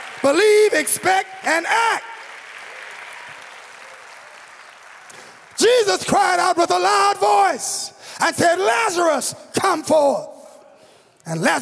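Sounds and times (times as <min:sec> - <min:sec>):
audience clapping: 0:00.0 - 0:07.3
speech: 0:00.2 - 0:02.1, 0:05.6 - 0:10.3, 0:11.2 - 0:11.6.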